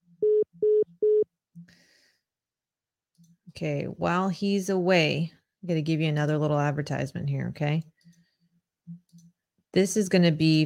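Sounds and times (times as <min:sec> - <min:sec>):
telephone tones while calling back a caller: 0:00.2 - 0:01.3
speech: 0:03.6 - 0:07.9, 0:09.8 - 0:10.6.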